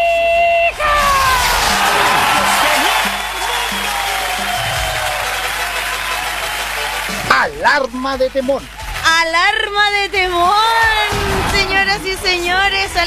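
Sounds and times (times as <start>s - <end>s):
audience applause and cheering: 0.7s - 13.0s
speech: 7.4s - 11.0s, 11.8s - 13.0s.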